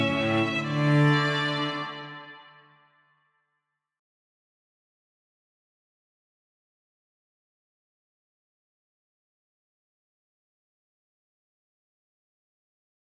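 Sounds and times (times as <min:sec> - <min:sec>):
strings: 0:00.0 - 0:03.0.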